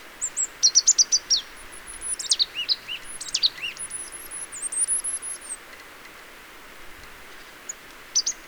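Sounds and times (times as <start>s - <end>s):
marsh tit Poecile palustris calling: 0.2s - 5.8s, 7.4s - 8.4s.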